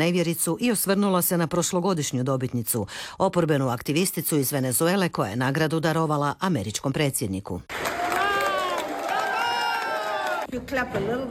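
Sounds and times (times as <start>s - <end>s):
speech: 0.0s - 7.9s, 10.5s - 11.3s
colleagues cheering and whooping for a prize award: 7.8s - 10.5s.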